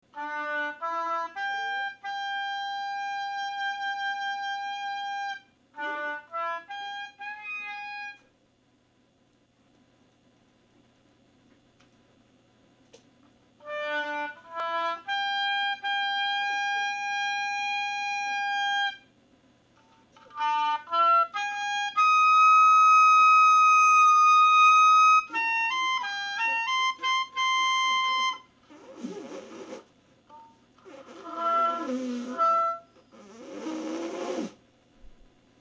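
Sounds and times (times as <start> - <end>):
oboe: 0.1 - 8.3, 13.6 - 19.1, 20.2 - 34.6.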